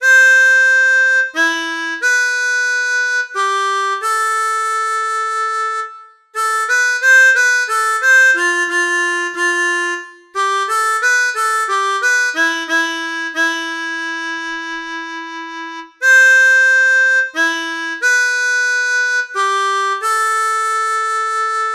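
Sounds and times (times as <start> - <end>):
harmonica playing a waltz: 0.0 - 21.7.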